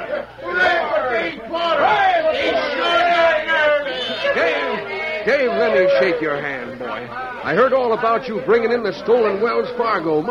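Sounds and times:
townspeople cheering: 0.0 - 10.2
speech: 5.3 - 10.2.

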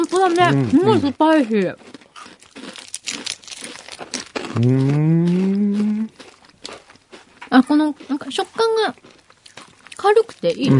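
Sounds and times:
small plastic snack wrapper crinkled and torn open: 0.0 - 1.1, 2.4 - 4.5
speech: 0.1 - 1.9, 4.5 - 6.2, 7.5 - 9.1, 10.0 - 10.7.

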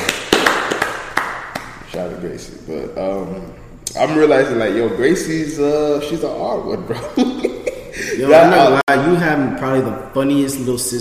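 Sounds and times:
hand clapping: 0.0 - 1.9
speech: 2.0 - 7.4, 8.1 - 10.9
laughter: 6.9 - 8.8.

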